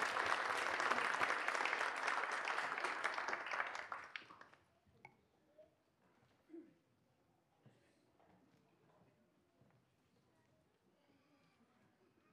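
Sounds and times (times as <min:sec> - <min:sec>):
round of applause: 0:00.0 - 0:04.6.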